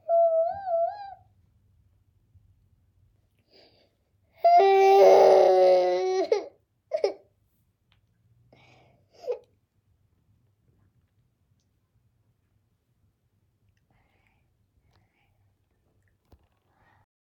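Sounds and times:
child crying: 0.0s - 1.2s, 4.4s - 7.2s.

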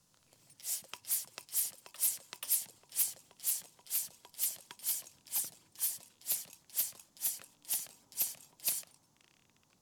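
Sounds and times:
bicycle pump pumping fast: 0.6s - 9.0s.

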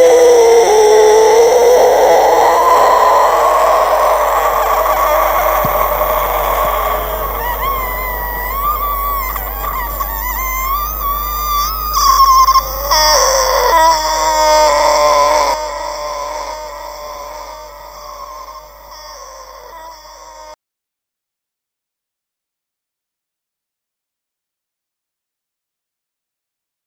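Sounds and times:
zombie groaning: 0.0s - 20.6s.

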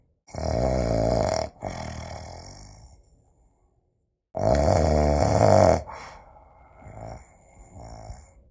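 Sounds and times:
snoring: 0.3s - 3.0s, 4.4s - 6.1s, 6.7s - 8.4s.

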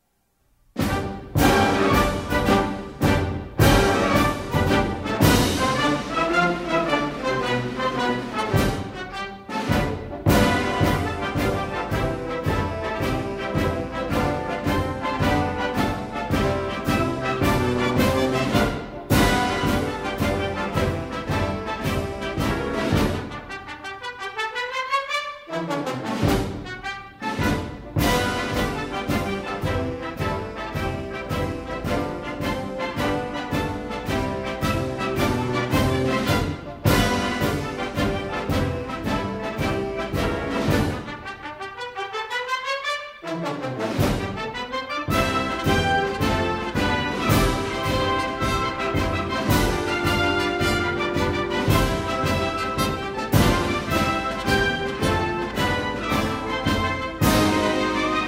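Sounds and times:
military drill march music: 0.7s - 58.2s.

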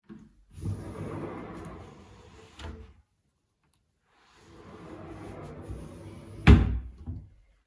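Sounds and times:
sliding door in the bedroom: 0.5s - 3.0s, 4.1s - 6.8s.

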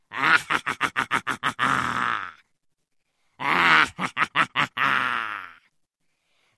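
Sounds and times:
villain's sinister laugh: 0.1s - 2.0s, 3.4s - 5.5s.

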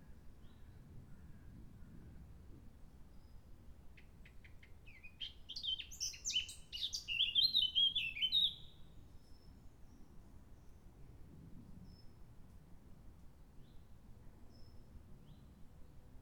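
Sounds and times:
blackcap singing: 4.9s - 8.7s.

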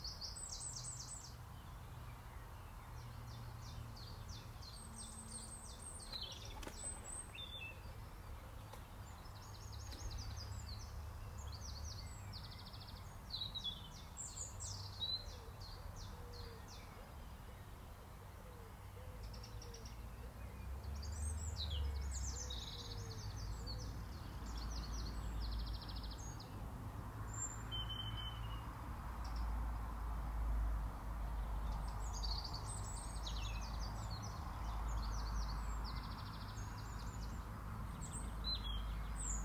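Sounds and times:
birds singing: 0.0s - 29.9s, 31.2s - 39.4s.

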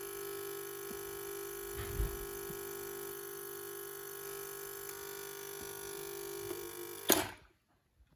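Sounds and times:
coffee machine: 0.0s - 7.5s.

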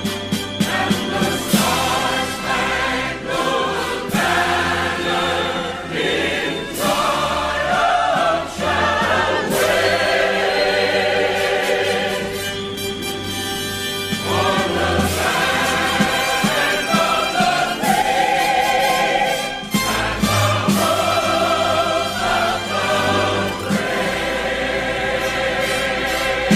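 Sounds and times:
anthem music: 0.0s - 26.5s.

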